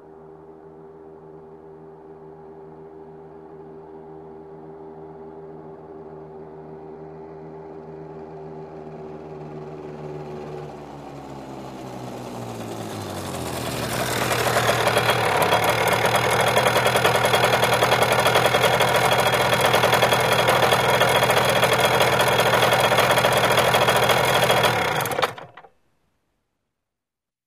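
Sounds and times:
motorcycle approaching and turning off: 7.4 - 25.7.

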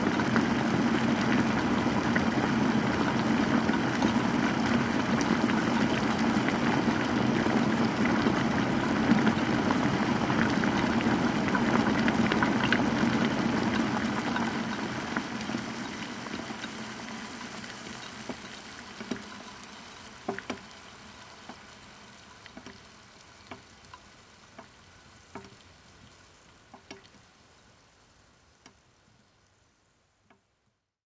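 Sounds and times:
water boiling: 0.0 - 30.5.

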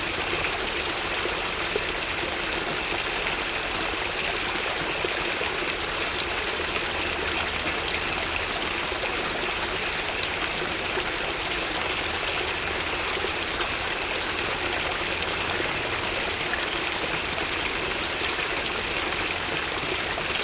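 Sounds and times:
crickets chirping at night: 0.0 - 20.4.

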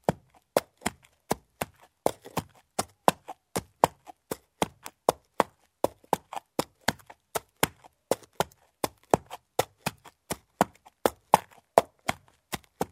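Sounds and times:
horse hooves clopping: 0.0 - 12.9.

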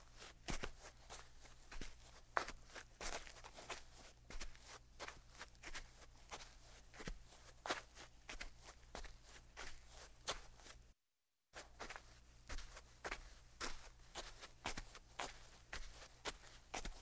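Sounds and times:
footsteps in shoes on dry sand: 0.0 - 10.8, 11.6 - 17.0.

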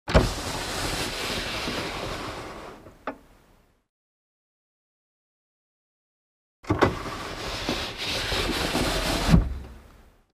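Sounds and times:
car glass window lowered and raised manually: 0.1 - 3.2, 6.7 - 9.8.

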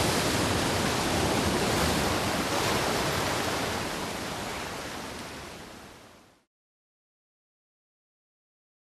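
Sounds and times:
sea waves crashing on rocks: 0.0 - 6.1.

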